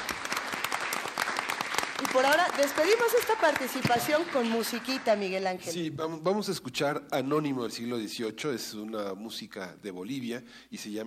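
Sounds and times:
crowd applause: 0.0s - 5.3s
speech: 2.2s - 11.0s.

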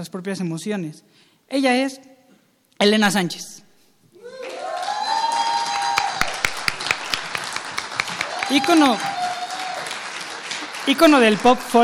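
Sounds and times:
speech: 0.0s - 2.1s, 2.8s - 3.6s, 8.5s - 9.2s, 10.9s - 11.8s
audience applause: 4.2s - 11.8s.

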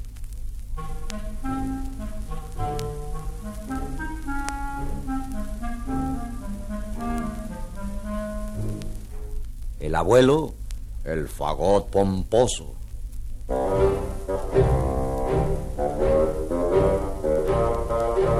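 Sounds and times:
soft orchestral accompaniment of sustained low tones: 0.8s - 9.3s, 13.5s - 18.3s
sweet smooth clarinet melody: 0.8s - 9.5s, 13.5s - 18.3s
speech: 9.8s - 12.8s.

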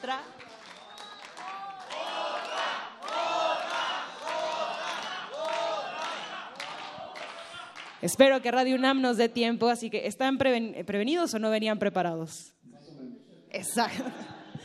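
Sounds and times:
speech: 0.0s - 0.6s, 8.0s - 12.6s, 13.6s - 14.3s
audience clapping: 0.0s - 8.2s
large audience cheering and shouting in rhythmic swells: 0.9s - 7.9s
laughter: 13.7s - 14.6s.

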